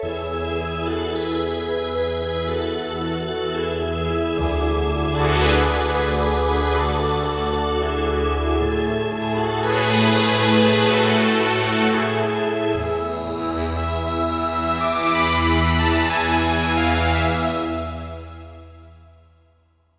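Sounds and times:
Roland JD-990 synthesizer patch: 0.1s - 18.6s.

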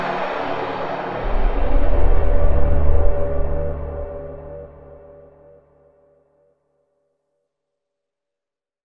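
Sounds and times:
synthesizer textures atmosphere: 0.0s - 6.3s.

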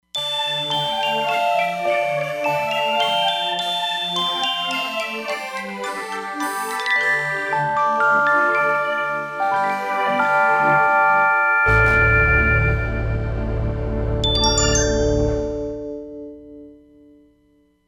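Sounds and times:
Roland Fantom XR synthesizer: 0.2s - 17.4s.

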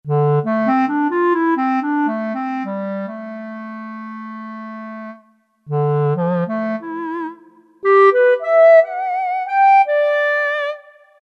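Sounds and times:
clarinet: 0.1s - 11.2s.

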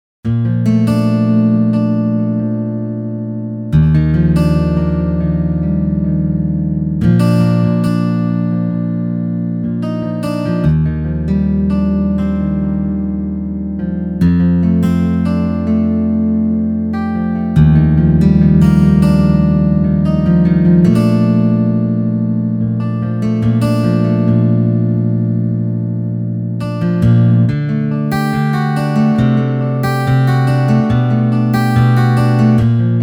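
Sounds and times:
acoustic guitar: 0.2s - 33.0s.

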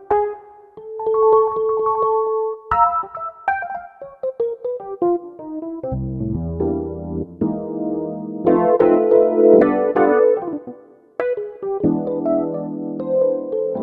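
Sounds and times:
tremolo Rhodes electric piano synth patch: 0.0s - 13.8s.

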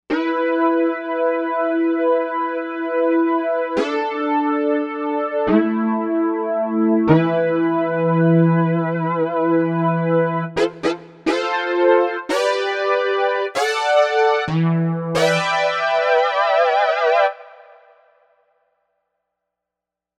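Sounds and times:
Novation UltraNova synthesizer: 0.1s - 18.3s.

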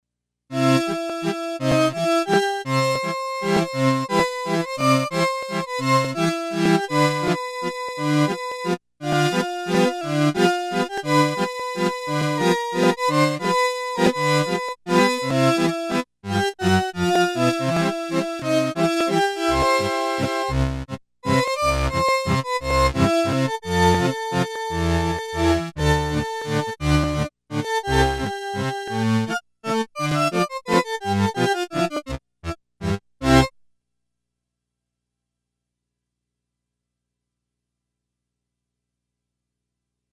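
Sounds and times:
accordion: 0.5s - 33.6s.

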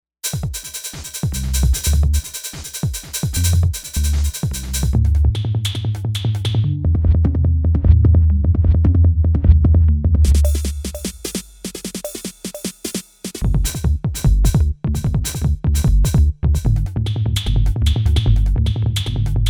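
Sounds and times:
drum and bass music: 0.2s - 19.4s.

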